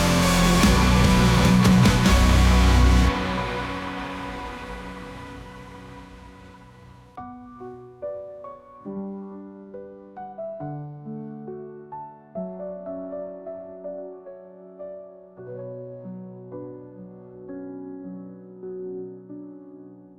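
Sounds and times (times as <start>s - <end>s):
rock metal music: 0.0s - 7.1s.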